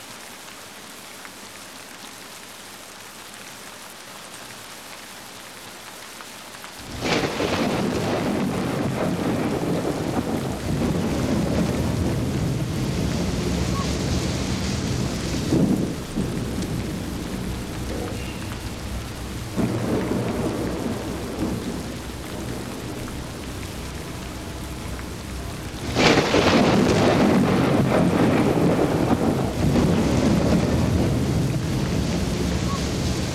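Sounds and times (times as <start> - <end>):
rain in a thunderstorm: 0.0 - 33.3
thunder: 6.8 - 33.3.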